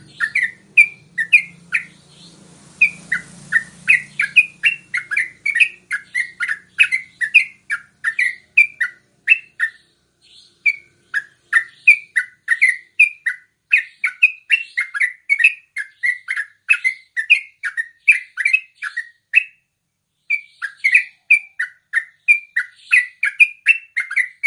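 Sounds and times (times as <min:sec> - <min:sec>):
yellow-vented bulbul song: 0:00.0 - 0:24.4.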